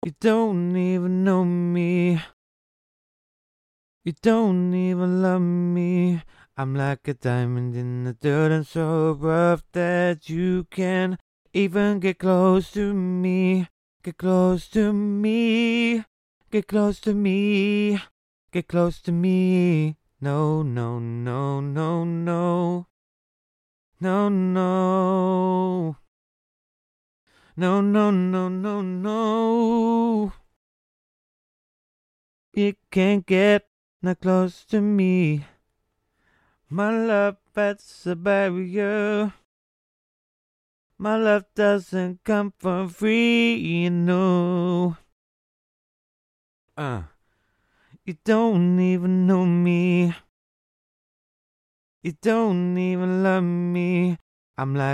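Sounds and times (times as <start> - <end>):
RnB a cappella vocals at 130 BPM in E-flat minor: 0.0 - 2.4, 4.0 - 23.0, 24.0 - 26.1, 27.3 - 30.6, 32.6 - 35.6, 36.7 - 39.5, 41.0 - 45.2, 46.8 - 47.2, 47.9 - 50.3, 52.0 - 54.9.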